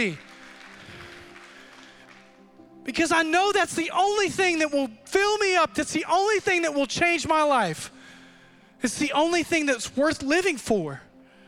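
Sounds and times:
speech: 0:00.0 - 0:00.3, 0:02.8 - 0:08.0, 0:08.8 - 0:11.1
audience clapping: 0:00.0 - 0:02.8.

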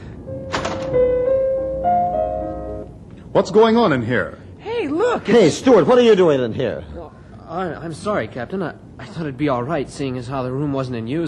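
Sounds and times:
door being opened: 0:00.4 - 0:01.5
speech: 0:03.4 - 0:04.4, 0:05.0 - 0:11.2.

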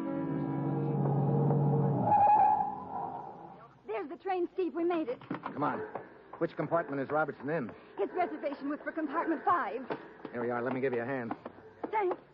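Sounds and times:
car racing by with a roaring engine: 0:00.2 - 0:03.6
car tires squealing: 0:00.4 - 0:03.6
speech: 0:04.8 - 0:12.2.

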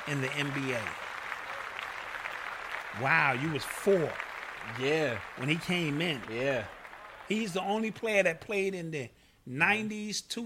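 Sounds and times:
hands clapping in studio: 0:00.0 - 0:08.3
speech: 0:00.1 - 0:01.1, 0:02.9 - 0:10.4.

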